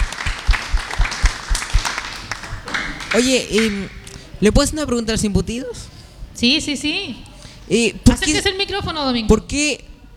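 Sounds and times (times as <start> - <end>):
audience applause: 0.0 - 3.8
speech: 3.1 - 9.9.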